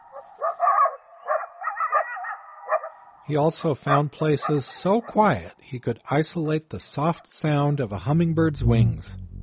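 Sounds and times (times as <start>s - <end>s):
coyote chorus in an eastern Washington canyon: 0.0s - 5.3s
speech: 3.3s - 9.2s.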